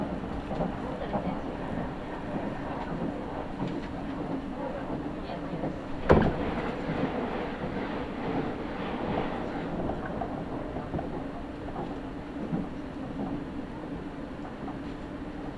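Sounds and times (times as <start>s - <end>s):
local train on the Iida Line rumbling between Toyohashi and Toyokawa: 0.0s - 15.5s.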